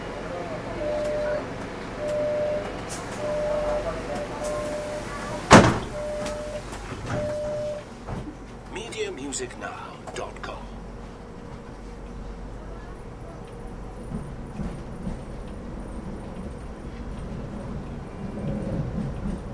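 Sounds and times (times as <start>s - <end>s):
subway train ride ambience: 0.0s - 19.5s.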